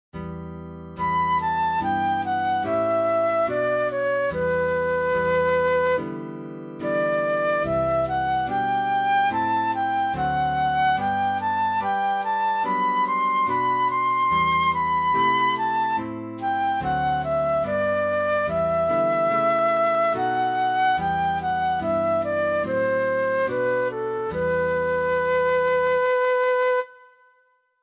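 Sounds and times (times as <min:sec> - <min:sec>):
flute playing a psalm: 0:01.0 - 0:27.5.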